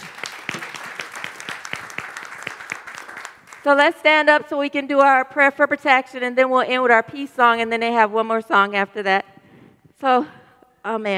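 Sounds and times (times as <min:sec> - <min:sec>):
audience clapping: 0:00.0 - 0:03.8
speech: 0:03.6 - 0:09.3, 0:10.0 - 0:11.1.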